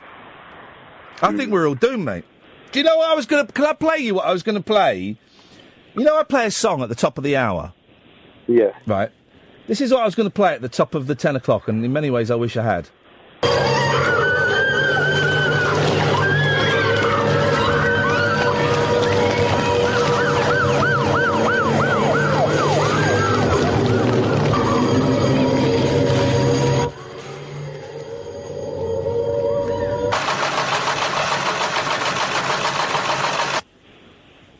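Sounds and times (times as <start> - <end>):
speech: 1.2 - 5.4, 6.0 - 7.8, 8.5 - 13.7
quieter rumble: 13.0 - 30.2
harsh steady rushing noise: 13.1 - 27.9, 28.6 - 33.7
loud wailing sirens in a nuclear bomb film scene: 13.4 - 30.5
dense roar: 13.4 - 31.2.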